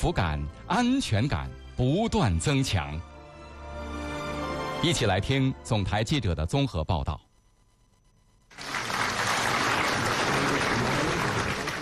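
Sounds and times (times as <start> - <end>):
speech: 0.0 - 3.1, 4.8 - 7.2
warm applause from a large crowd in a big hall: 8.5 - 11.8.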